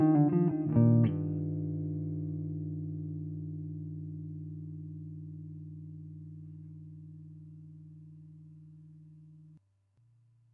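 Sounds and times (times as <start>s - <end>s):
Telecaster electric guitar solo: 0.0s - 6.2s.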